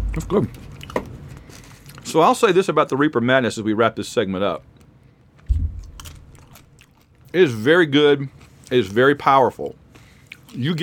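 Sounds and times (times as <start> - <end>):
speech: 0.2 - 0.7, 2.1 - 4.7, 7.3 - 9.8, 10.5 - 10.8
biting and chewing chicken: 0.5 - 2.1, 4.8 - 7.4, 9.9 - 10.8.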